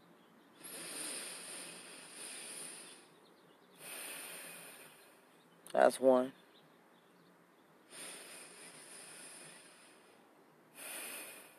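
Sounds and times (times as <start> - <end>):
slow deep breathing through the nose during a guided breathing exercise: 0.6 - 5.4, 7.9 - 11.5
speech: 5.7 - 6.4.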